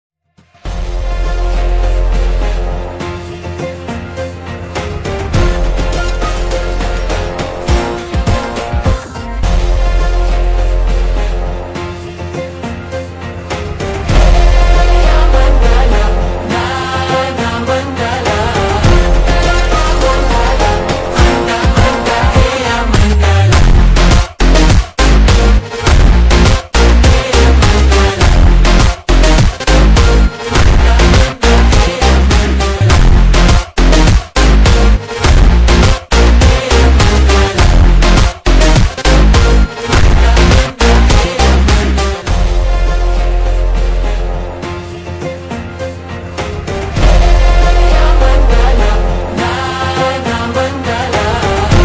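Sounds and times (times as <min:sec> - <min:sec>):
funk phonk music: 0:00.6 - 0:51.8.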